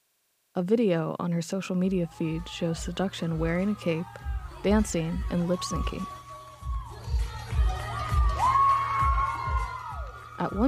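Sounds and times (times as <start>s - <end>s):
speech: 0.6s - 6.2s, 10.4s - 10.6s
crowd cheering wildly: 2.0s - 10.6s.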